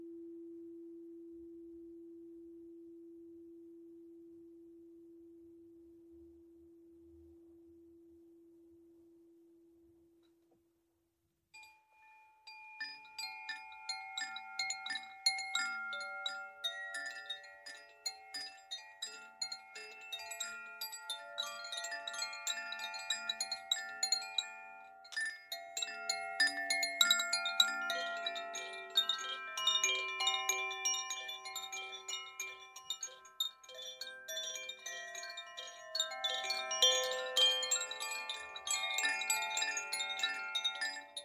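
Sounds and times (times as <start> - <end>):
dense bright chiming of struck crystal bowls and gongs: 11.6 - 41.2
single crystal bowl tone humming: 12.8 - 41.2.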